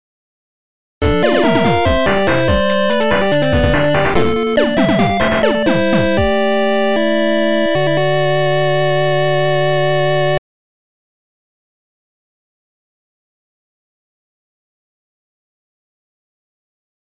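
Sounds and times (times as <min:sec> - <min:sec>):
game over sound: 0:01.0 - 0:10.4.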